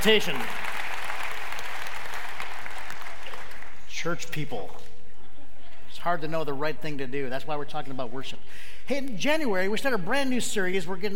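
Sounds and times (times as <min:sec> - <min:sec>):
speech: 0:00.0 - 0:00.7, 0:04.0 - 0:04.9, 0:06.0 - 0:11.1
audience clapping: 0:00.0 - 0:03.9.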